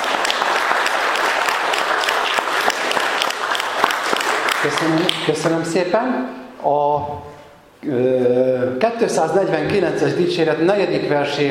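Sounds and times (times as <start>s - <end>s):
audience clapping: 0.0s - 5.7s
speech: 4.6s - 11.5s.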